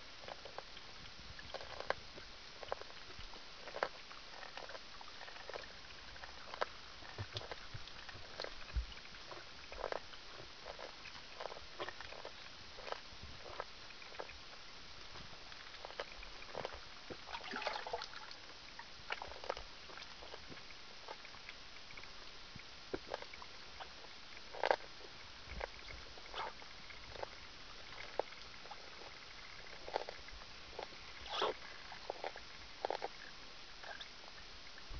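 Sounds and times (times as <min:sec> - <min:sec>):
fish feeding: 0:00.0 - 0:34.9.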